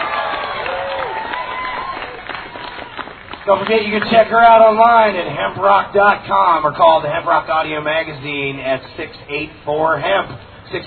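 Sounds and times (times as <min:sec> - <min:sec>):
crowd cheering and whooping: 0:00.0 - 0:03.1
crowd clapping: 0:00.0 - 0:04.4
speech: 0:03.5 - 0:10.8.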